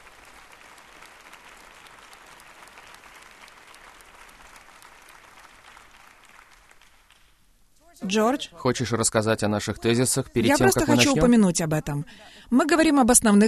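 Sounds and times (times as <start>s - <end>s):
audience applause: 0.0s - 7.3s
speech: 8.0s - 13.4s.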